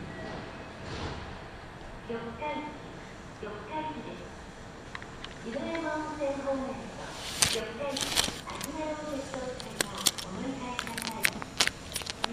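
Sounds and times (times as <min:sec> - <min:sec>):
Kintetsu Nagoya Line local train running: 0:00.0 - 0:12.3
person talking: 0:05.5 - 0:12.3
hissing bursts: 0:06.2 - 0:12.3.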